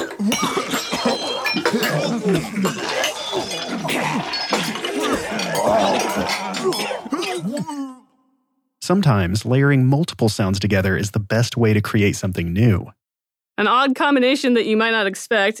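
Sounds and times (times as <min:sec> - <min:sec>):
crowd of people gagging and retching: 0:00.0 - 0:08.2
speech: 0:00.2 - 0:00.9, 0:01.7 - 0:04.4, 0:08.9 - 0:13.0, 0:13.6 - 0:15.5.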